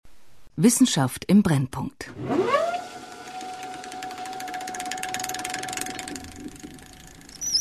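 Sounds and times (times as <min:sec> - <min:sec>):
speech: 0:00.6 - 0:02.6
oil transport pump running: 0:02.3 - 0:07.6.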